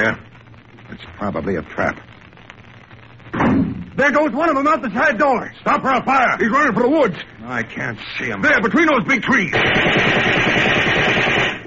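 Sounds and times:
speech: 0:00.0 - 0:00.3, 0:00.9 - 0:02.1, 0:03.6 - 0:10.8
gunshots fired at a fleeing man: 0:09.5 - 0:11.6.

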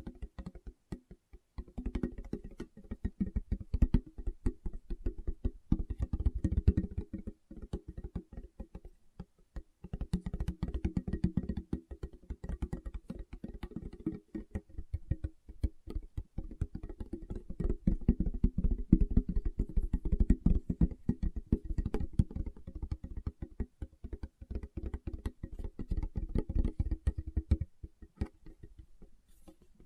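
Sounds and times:
fingertips tapping rapidly: 0:00.0 - 0:29.8.

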